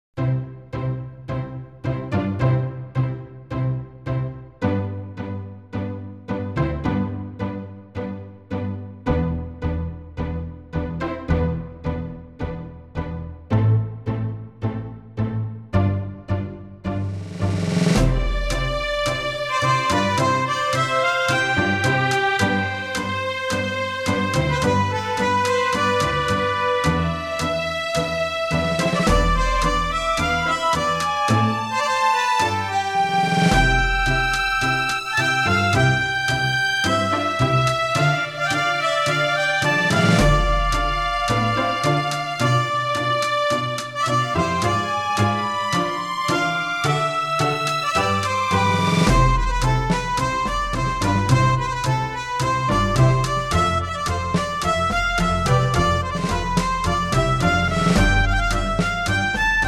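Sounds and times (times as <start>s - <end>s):
tango music: 0.3s - 59.6s.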